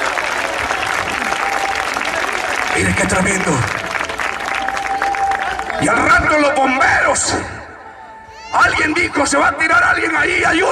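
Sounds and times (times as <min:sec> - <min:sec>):
church congregation clapping in praise to God during a sermon: 0:00.0 - 0:06.5
speech: 0:02.8 - 0:03.8, 0:05.8 - 0:07.6, 0:08.5 - 0:10.7.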